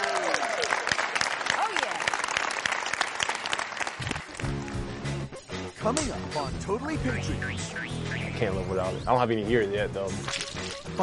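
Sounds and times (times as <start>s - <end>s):
audience applause: 0.0s - 5.0s
speech: 5.8s - 11.0s.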